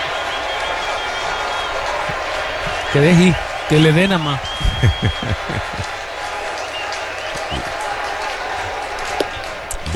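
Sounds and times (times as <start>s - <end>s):
laughter: 0.0s - 9.9s
stadium crowd applauding on their feet: 0.0s - 9.9s
speech: 2.9s - 6.0s.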